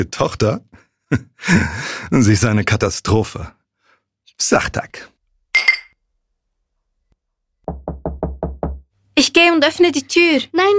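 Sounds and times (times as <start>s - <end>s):
speech: 0.0s - 3.6s, 4.4s - 5.1s, 9.2s - 10.7s
glasses clinking in a toast: 5.6s - 6.0s
dull knocks: 7.6s - 8.9s.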